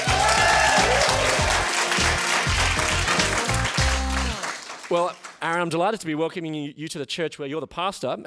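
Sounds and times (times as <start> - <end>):
audience applause: 0.0 - 5.4
speech: 4.9 - 8.2.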